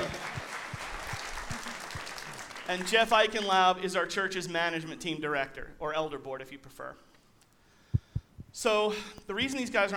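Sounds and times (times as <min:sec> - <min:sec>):
church congregation applause: 0:00.0 - 0:03.6
speech: 0:02.7 - 0:07.1, 0:08.6 - 0:09.9.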